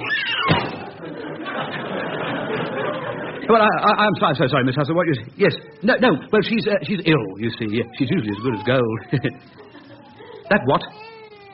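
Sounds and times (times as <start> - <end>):
door slamming shut inside a home: 0.4 - 1.0
laughter: 0.7 - 11.2
speech: 3.5 - 9.6, 10.5 - 11.0.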